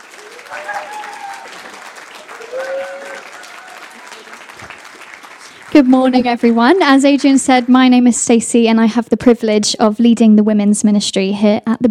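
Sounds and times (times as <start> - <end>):
church audience applause welcoming a speaker: 0.0 - 8.0
speech: 0.5 - 1.3, 5.8 - 11.8.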